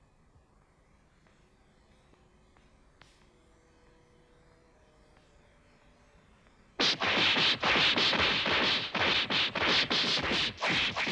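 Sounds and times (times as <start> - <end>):
blows being struck in a fight: 6.8 - 11.0.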